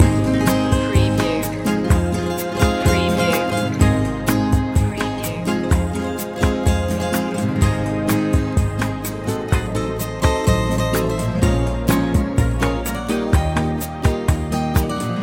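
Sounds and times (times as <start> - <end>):
calypso music loop: 0.0 - 15.2.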